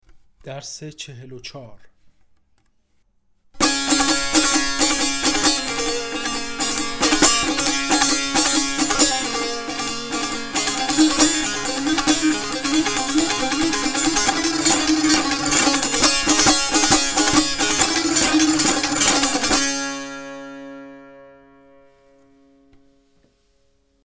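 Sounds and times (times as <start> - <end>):
tanbur practice: 3.6 - 23.0.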